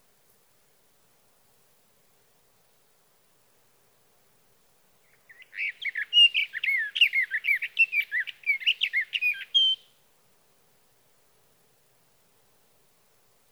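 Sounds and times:
sage thrasher: 5.1s - 9.9s.

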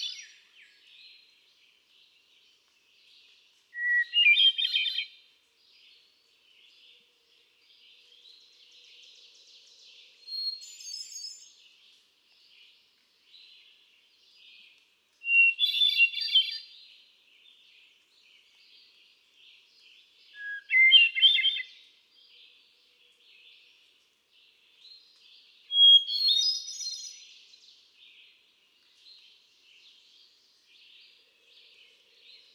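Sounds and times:
Hermit Thrush: 2.0s - 5.1s, 8.3s - 22.6s, 23.3s - 32.5s.

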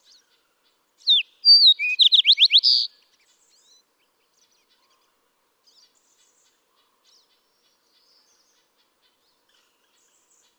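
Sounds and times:
Fox Sparrow song: 1.0s - 3.0s.

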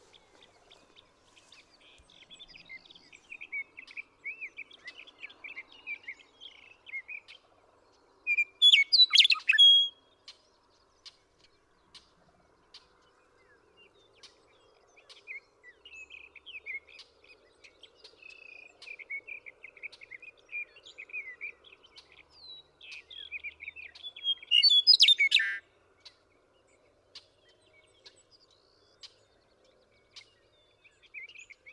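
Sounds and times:
Western meadowlark singing flutey whistles: 8.3s - 10.0s, 24.1s - 25.6s.

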